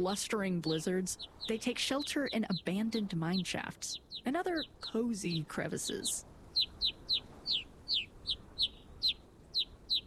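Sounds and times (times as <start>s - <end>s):
speech: 0.0s - 7.0s
rosy finch calls: 0.0s - 10.0s.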